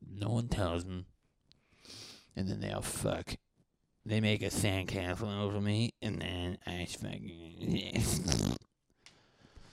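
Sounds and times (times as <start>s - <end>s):
speech: 0.4s - 1.1s, 2.4s - 3.4s, 4.0s - 8.6s
fart: 8.0s - 8.7s.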